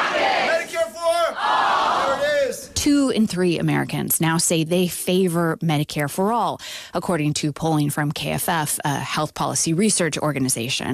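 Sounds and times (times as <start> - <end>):
crowd chanting campaign slogan: 0.0 - 2.8
speech: 2.8 - 10.9.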